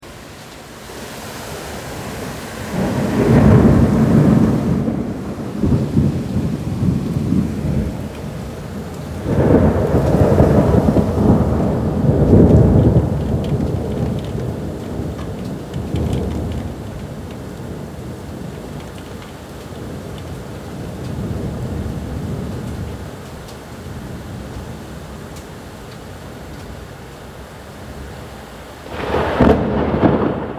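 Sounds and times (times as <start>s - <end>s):
thunder: 2.6s - 23.0s, 28.9s - 30.5s.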